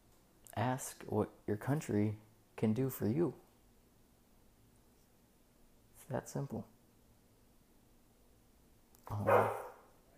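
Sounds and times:
speech: 0.6 - 3.4, 6.1 - 6.7, 9.1 - 9.6
pet dog barking: 9.2 - 9.9.

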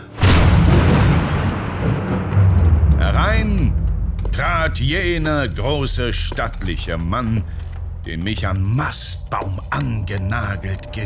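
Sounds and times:
door bursting open: 0.1 - 5.5
speech: 4.6 - 11.0.

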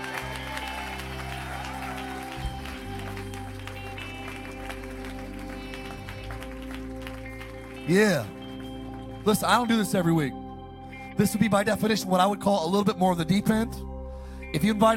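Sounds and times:
audience shouting: 0.0 - 2.7
audience hand clapping: 0.0 - 9.9
speech: 7.9 - 8.4, 9.2 - 10.4, 11.2 - 13.9, 14.5 - 14.9.

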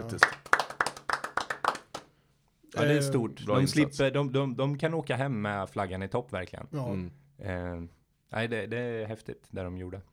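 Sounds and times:
hand clapping: 0.0 - 2.2
speech: 0.1 - 0.4, 2.8 - 10.1.

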